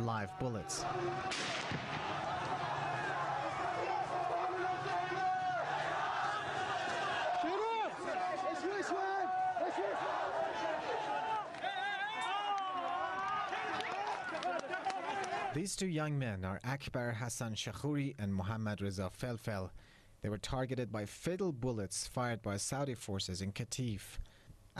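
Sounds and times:
speech: 0.0 - 2.2, 15.6 - 24.7
protesters shouting slogans: 0.3 - 15.6.

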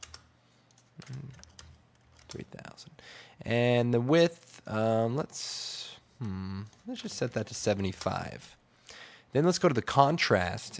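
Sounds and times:
computer keyboard typing a value into editing software: 0.0 - 2.5, 6.6 - 8.3
speech: 1.0 - 1.4, 2.3 - 8.6, 9.3 - 10.7.

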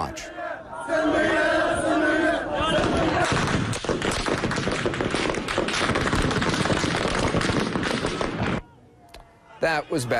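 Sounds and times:
anti-government protesters chanting: 0.0 - 3.6
security forces with American weapons firing at protesters: 2.7 - 8.6.

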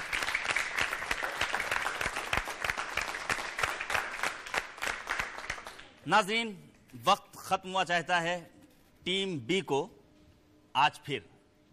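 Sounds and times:
loud applause: 0.0 - 5.9
speech: 6.1 - 10.0, 10.8 - 11.3.

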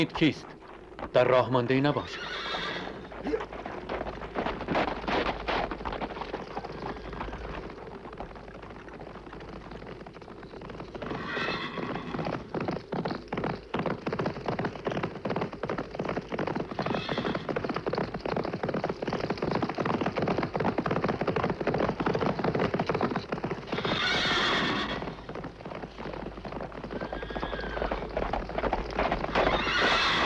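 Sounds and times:
speech: 0.0 - 3.4
horse hooves clip-clopping: 0.0 - 30.2
horse whinnying: 2.0 - 3.6, 11.0 - 12.4, 16.7 - 17.6, 23.7 - 25.3, 26.9 - 28.1, 29.3 - 30.2.

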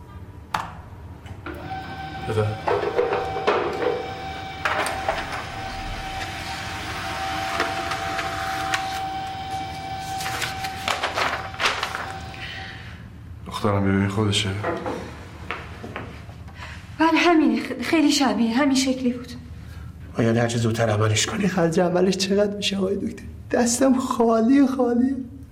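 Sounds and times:
printer printing out a document: 1.4 - 12.8
speech: 2.3 - 3.0, 13.6 - 15.1, 17.5 - 19.4, 20.2 - 25.2.

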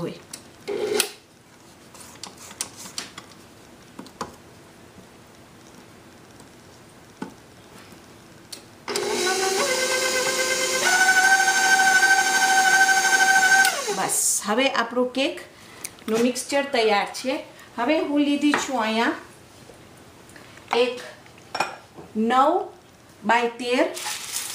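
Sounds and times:
speech: 0.0 - 0.3, 14.5 - 15.5, 16.1 - 19.2, 20.8 - 21.1, 22.2 - 24.1
electric mixer on high mixing cake batter: 8.9 - 14.2.

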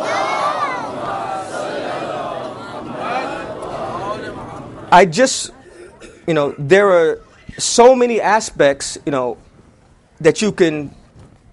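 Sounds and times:
crowd loudly reciting salawat in unison: 0.0 - 5.0
speech: 4.9 - 5.6, 6.3 - 9.4, 10.2 - 11.0.

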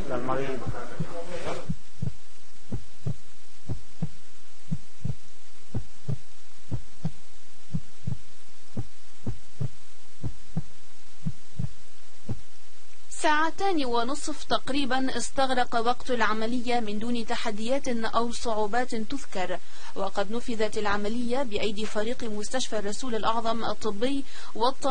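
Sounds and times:
faint constant hum: 0.0 - 24.8
speech: 0.1 - 1.8, 13.2 - 24.8
heartbeat sounds on a cardiac monitor: 0.5 - 12.6.

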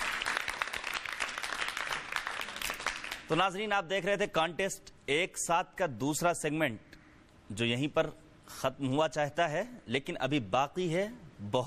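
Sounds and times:
audience clapping: 0.0 - 3.4
speech: 3.3 - 6.9, 7.5 - 11.6.

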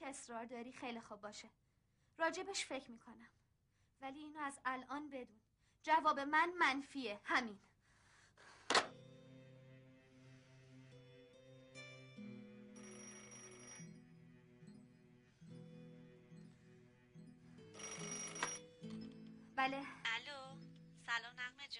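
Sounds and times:
speech: 0.1 - 1.6, 2.2 - 3.4, 4.0 - 7.7, 19.6 - 20.5, 21.1 - 21.7
telephone ringing: 12.2 - 14.1, 17.7 - 19.3.

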